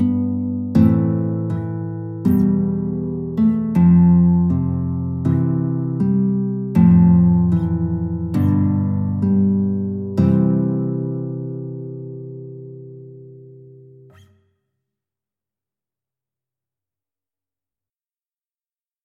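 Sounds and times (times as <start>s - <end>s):
guitar canon: 0.0s - 14.6s.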